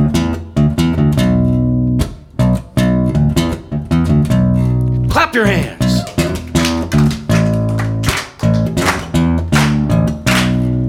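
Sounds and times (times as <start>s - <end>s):
isolated bass line of a song: 1.1s - 10.8s
speech: 5.3s - 5.8s.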